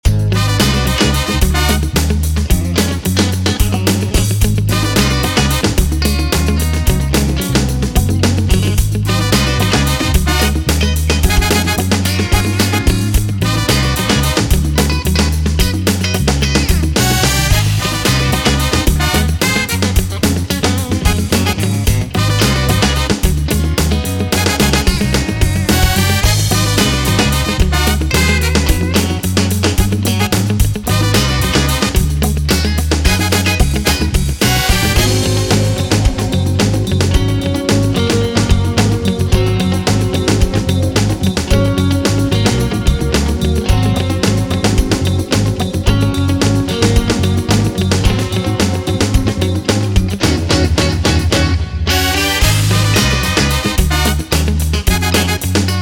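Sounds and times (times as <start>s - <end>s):
funk music: 0.0s - 55.7s.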